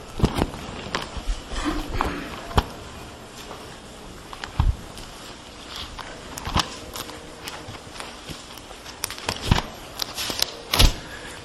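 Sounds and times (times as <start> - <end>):
many Bible pages being turned: 0.0 - 11.0.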